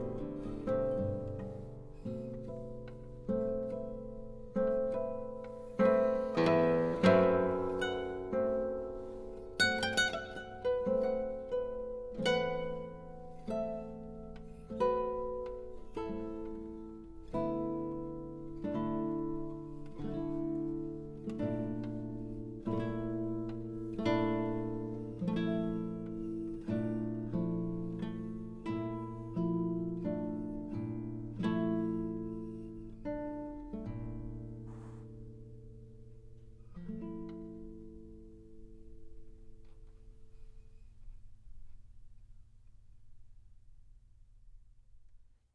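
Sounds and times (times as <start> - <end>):
improvised music: 0.0 - 35.2.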